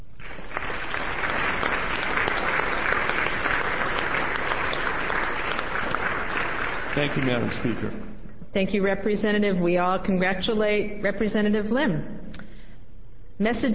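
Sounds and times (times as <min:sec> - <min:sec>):
round of applause: 0:00.0 - 0:08.1
speech: 0:07.0 - 0:12.2, 0:13.4 - 0:13.7.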